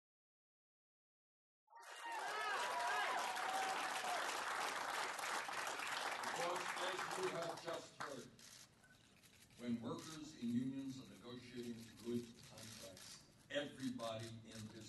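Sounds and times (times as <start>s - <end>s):
rally crowd cheering and shouting: 1.8s - 4.3s
rally crowd applauding: 1.8s - 8.2s
speech: 6.4s - 8.6s, 9.6s - 14.8s.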